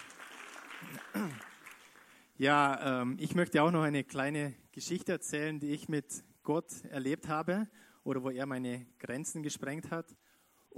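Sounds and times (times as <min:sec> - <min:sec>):
audience applause: 0:00.0 - 0:02.3
speech: 0:02.4 - 0:10.2.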